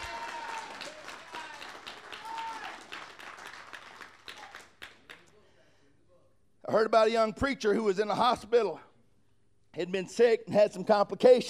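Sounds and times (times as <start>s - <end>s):
audience hand clapping: 0.0s - 5.4s
speech: 6.7s - 8.9s, 9.8s - 11.4s.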